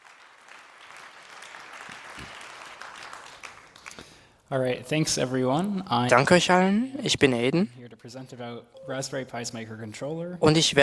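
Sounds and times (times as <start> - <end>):
audience applause: 0.0 - 4.3
speech: 4.5 - 10.8.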